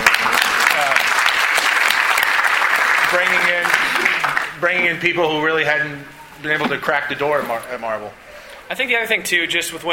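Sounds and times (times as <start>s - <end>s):
audience applause: 0.0s - 4.6s
speech: 3.1s - 4.0s, 4.6s - 9.9s.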